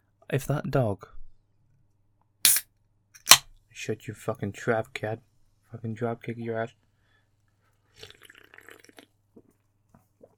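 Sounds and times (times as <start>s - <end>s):
speech: 0.3s - 1.2s, 3.8s - 6.8s, 8.0s - 8.2s
drink can popping open: 3.2s - 3.5s.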